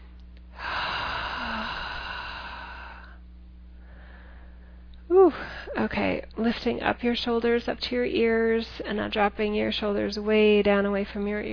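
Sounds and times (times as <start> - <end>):
long deep breath: 0.5 - 3.2, 3.8 - 5.8
speech: 5.3 - 11.5.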